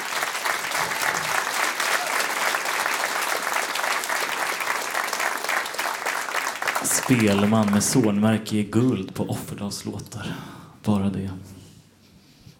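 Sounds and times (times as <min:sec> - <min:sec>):
warm audience applause: 0:00.0 - 0:08.2
speech: 0:06.8 - 0:11.6.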